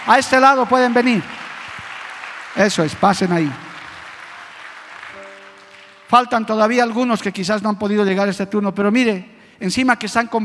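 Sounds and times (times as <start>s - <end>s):
speech: 0.0s - 1.4s, 2.6s - 3.6s, 6.1s - 10.4s
audience applause: 0.0s - 6.2s.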